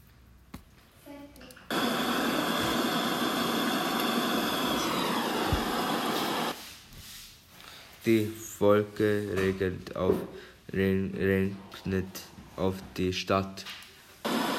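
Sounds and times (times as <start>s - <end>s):
helicopter landing in the mountains: 1.7s - 6.5s
speech: 8.0s - 13.8s.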